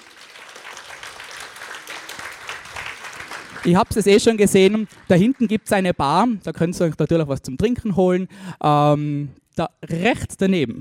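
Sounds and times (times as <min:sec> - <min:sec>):
audience applause: 0:00.0 - 0:05.9
speech: 0:03.6 - 0:10.7.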